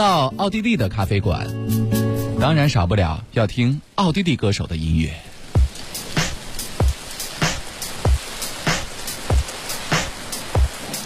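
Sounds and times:
speech: 0:00.0 - 0:05.3
rain sound effect: 0:00.0 - 0:11.0
snare hits: 0:09.9 - 0:10.1.

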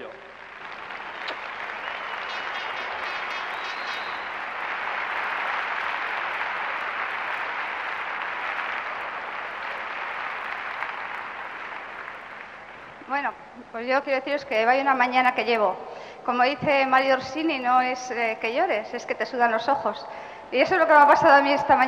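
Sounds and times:
audience applause: 0:00.0 - 0:13.3
speech: 0:13.1 - 0:21.8.

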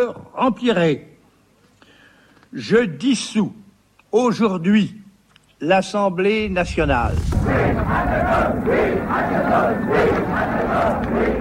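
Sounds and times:
speech: 0:00.0 - 0:01.1, 0:02.5 - 0:05.0, 0:05.6 - 0:11.3
demonstrators' crowd chanting slogans: 0:07.0 - 0:11.3.

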